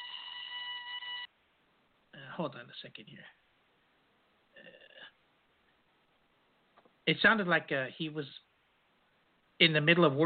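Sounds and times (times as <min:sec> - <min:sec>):
phone ringing: 0:00.0 - 0:01.3
speech: 0:02.4 - 0:03.4, 0:07.1 - 0:08.5, 0:09.6 - 0:10.2.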